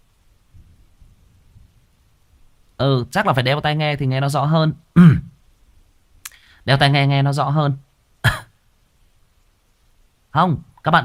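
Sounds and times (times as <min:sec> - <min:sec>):
steady rain: 0:00.0 - 0:11.0
low rolling rumbles of thunder: 0:00.5 - 0:02.4
speech: 0:02.8 - 0:05.2, 0:06.6 - 0:07.9, 0:10.4 - 0:11.0.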